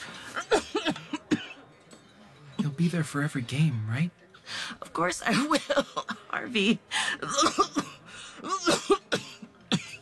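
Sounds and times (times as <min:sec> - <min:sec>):
woman coughing: 0:00.4 - 0:01.6, 0:05.3 - 0:06.5, 0:07.2 - 0:10.0
speech: 0:02.8 - 0:04.2, 0:05.0 - 0:07.8.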